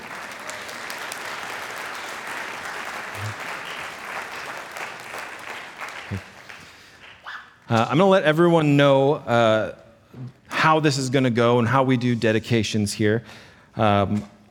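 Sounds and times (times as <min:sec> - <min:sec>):
audience applause: 0:00.0 - 0:07.3
speech: 0:07.7 - 0:14.4.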